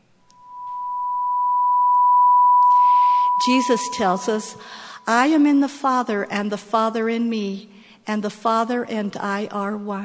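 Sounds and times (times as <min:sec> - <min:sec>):
steady pure sine wave tone: 0:00.3 - 0:05.5
speech: 0:03.4 - 0:10.0.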